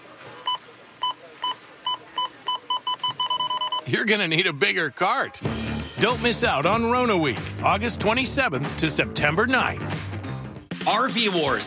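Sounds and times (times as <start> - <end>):
checkout scanner beeping: 0.4 - 4.8
speech: 3.9 - 10.0, 10.9 - 11.6.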